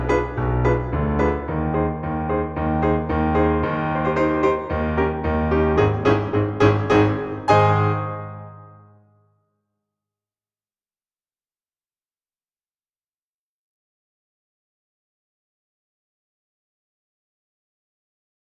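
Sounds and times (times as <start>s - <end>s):
accompaniment in E flat: 0.0s - 9.0s.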